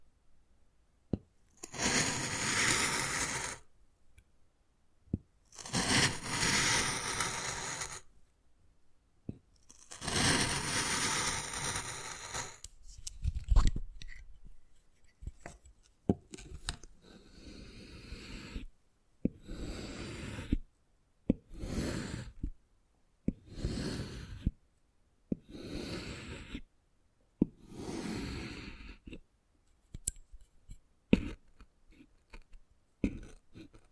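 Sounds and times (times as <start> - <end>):
wood carving scraping strokes: 1.6 - 3.6, 5.6 - 8.1, 9.6 - 18.7, 19.4 - 20.6, 21.4 - 22.5, 23.5 - 24.5, 25.5 - 26.6, 27.6 - 29.2, 31.1 - 33.9.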